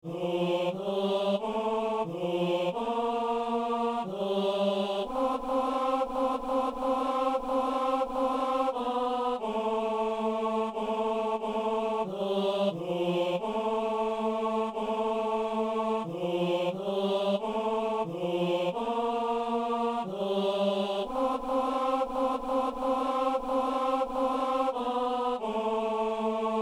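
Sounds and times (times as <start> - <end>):
tenor voice singing mass: 0.0 - 26.6.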